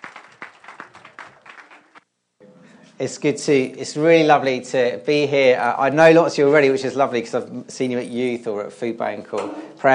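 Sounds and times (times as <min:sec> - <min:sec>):
audience applause: 0:00.0 - 0:02.0
speech: 0:03.0 - 0:09.9.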